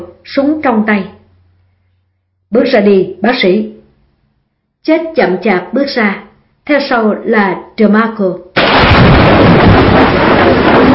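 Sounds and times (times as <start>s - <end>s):
speech: 0.0s - 1.2s, 2.5s - 3.7s, 4.8s - 10.0s
loud thunder rumbling: 8.6s - 10.9s.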